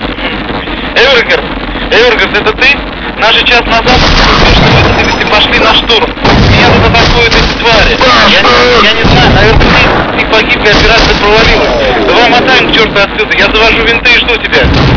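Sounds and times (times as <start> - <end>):
radio: 0.0 - 14.8.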